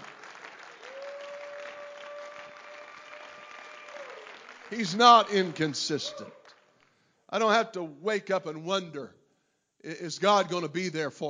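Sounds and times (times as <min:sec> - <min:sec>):
audience clapping: 0:00.0 - 0:07.0
speech: 0:04.7 - 0:06.4, 0:07.3 - 0:09.2, 0:09.8 - 0:11.2.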